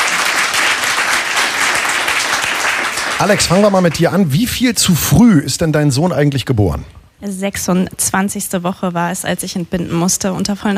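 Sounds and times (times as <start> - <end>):
studio audience clapping on a morning talk show: 0.0 - 4.6
speech: 3.2 - 10.7.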